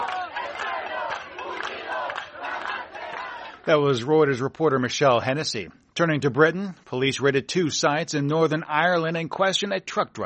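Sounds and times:
protesters chanting at a rally: 0.0 - 3.7
speech: 3.7 - 10.2.

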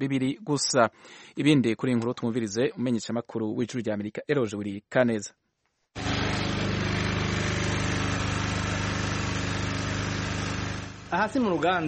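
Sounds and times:
speech: 0.0 - 6.1, 11.1 - 11.8
fuel-powered electricity generator running in Bujumbura: 6.0 - 11.6.

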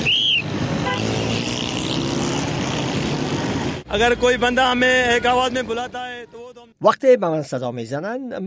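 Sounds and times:
sharp high whistle or horn-like tone: 0.0 - 0.5
busy city street traffic in Karachi: 0.0 - 6.8
speech: 3.9 - 8.4.

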